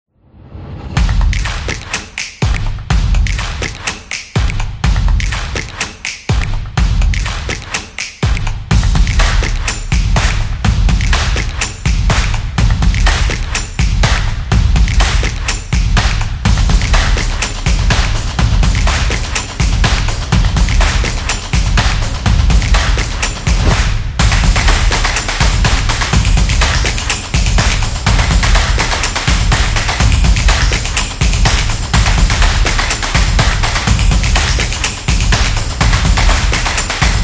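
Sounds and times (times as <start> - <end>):
energetic drum beat: 1.0 - 37.2.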